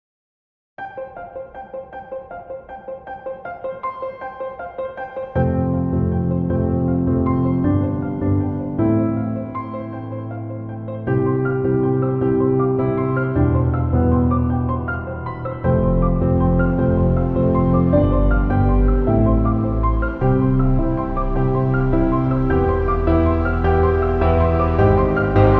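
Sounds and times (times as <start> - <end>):
Steinway piano: 0.8 - 25.5.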